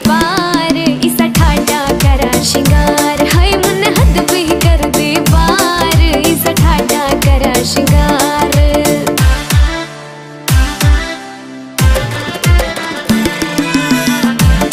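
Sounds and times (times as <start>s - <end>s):
Haryanvi ringtone music: 0.1s - 14.6s.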